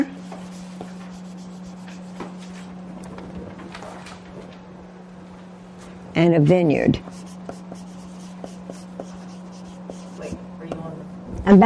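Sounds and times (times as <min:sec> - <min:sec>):
pen scratching out symbols by hand: 0:00.4 - 0:02.2, 0:07.0 - 0:10.4
speech: 0:06.2 - 0:07.2.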